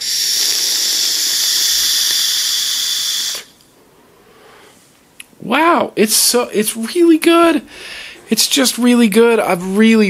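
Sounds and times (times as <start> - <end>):
air drawn through a vape tank: 0.0 - 3.6
speech: 5.4 - 10.0.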